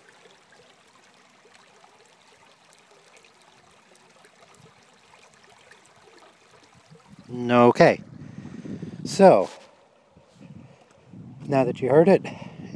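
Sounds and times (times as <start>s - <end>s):
creek water flowing: 0.0s - 12.7s
speech: 7.3s - 8.1s, 9.1s - 9.6s, 11.5s - 12.4s.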